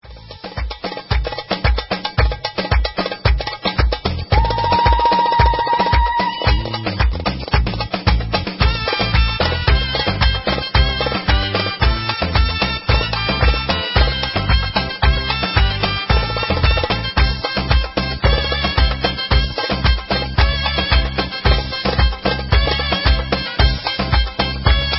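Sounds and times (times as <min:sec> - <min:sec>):
instrumental music: 0:00.0 - 0:24.9.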